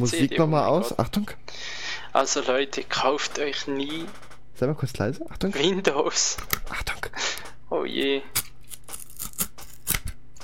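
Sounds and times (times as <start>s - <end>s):
speech: 0.0s - 8.5s
faint steady hum: 0.0s - 10.4s
scissors snipping through a software box seal: 8.4s - 10.4s.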